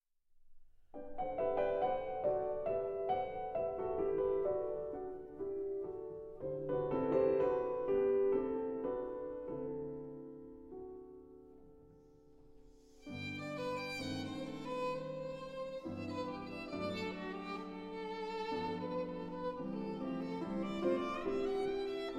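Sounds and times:
piano trio playing in G major: 1.1s - 22.1s.

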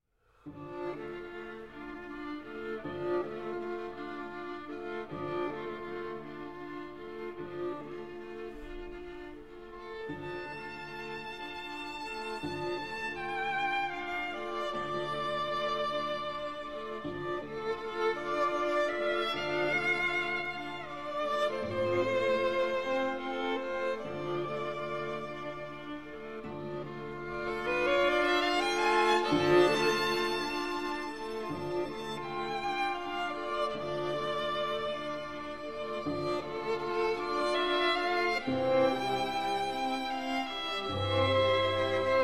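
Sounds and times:
string quartet: 0.0s - 42.2s.

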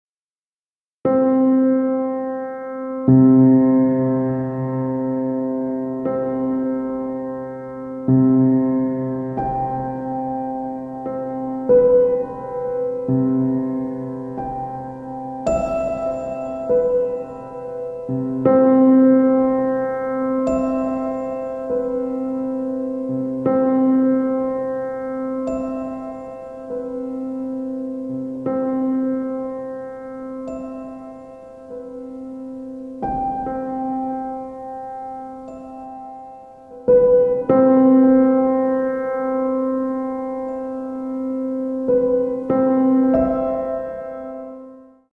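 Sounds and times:
piano: 1.0s - 45.1s.

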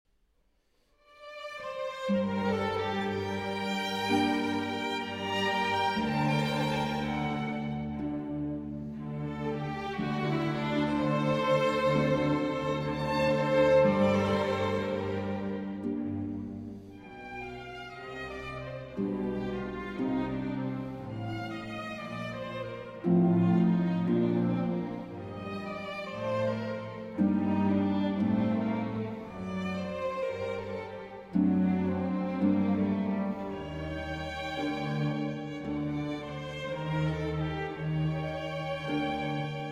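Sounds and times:
concerto for harp and orchestra in G major andante: 1.2s - 39.7s.

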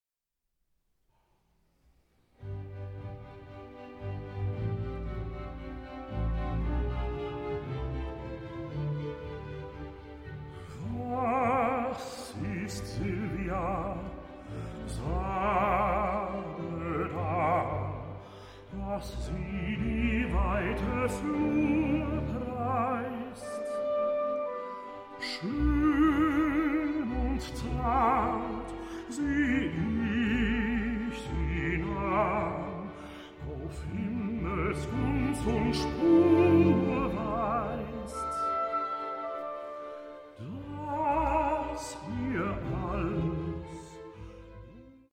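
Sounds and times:
chamber orchestra: 2.4s - 45.1s
baritone singing: 10.7s - 24.2s, 25.2s - 39.6s, 40.4s - 45.1s.

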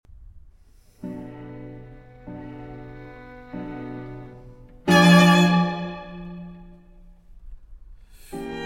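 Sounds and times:
quartet playing an adagio cantabile in E major: 4.9s - 6.7s.

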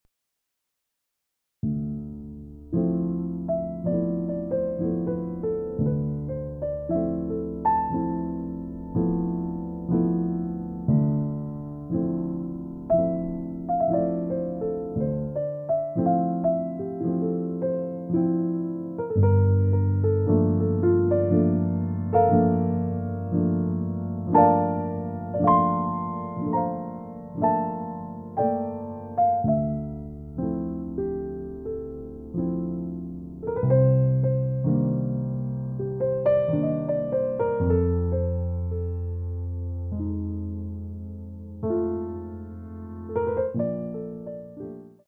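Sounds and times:
jazz piano: 1.6s - 45.0s.

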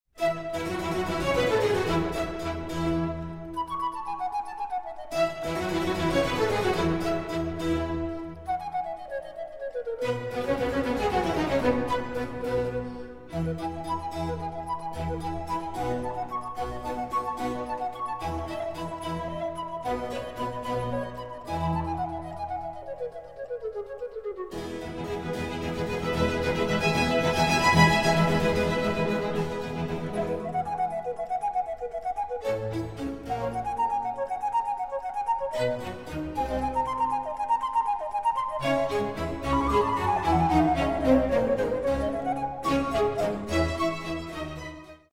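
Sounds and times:
flute and strings concerto in F major: 0.2s - 45.1s.

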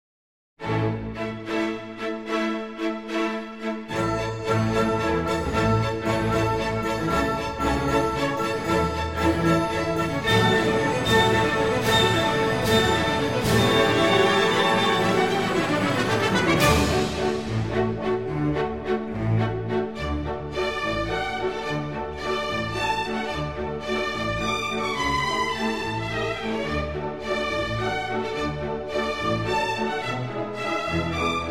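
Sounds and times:
waltz music: 0.6s - 31.4s.

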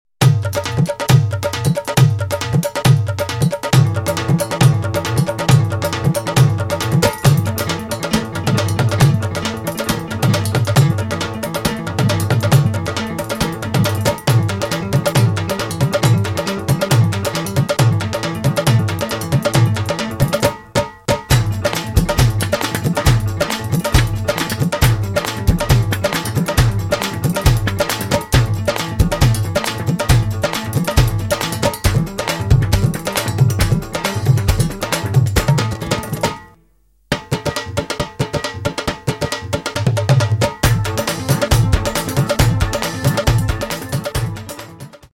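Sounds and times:
driving drum beat: 0.2s - 36.5s, 37.1s - 45.1s.

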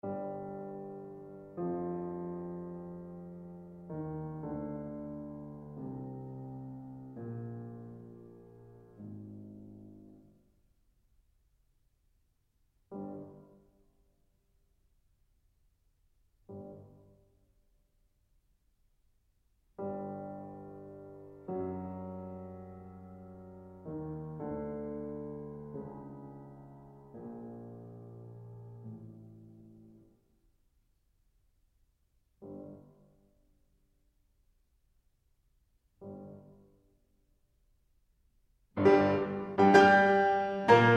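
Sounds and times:
piano sonata in B minor: 0.0s - 10.5s, 12.9s - 13.8s, 19.8s - 30.2s, 38.7s - 40.9s.

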